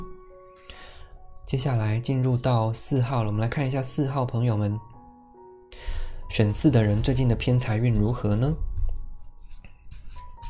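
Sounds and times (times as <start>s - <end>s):
speech: 1.5s - 4.9s, 6.3s - 8.7s
tarot cards shuffling: 9.3s - 10.4s.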